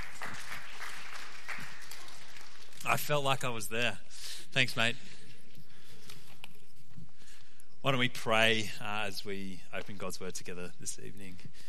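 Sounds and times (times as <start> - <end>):
clapping: 0.0 - 3.0
speech: 2.9 - 5.2, 7.8 - 11.6.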